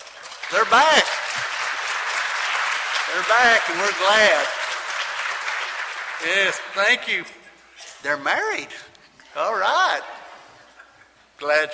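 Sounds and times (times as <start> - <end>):
people clapping for a newly married couple: 0.0 - 7.4
speech: 0.5 - 1.5, 3.1 - 4.6, 6.2 - 7.4, 8.0 - 10.2, 11.4 - 11.7.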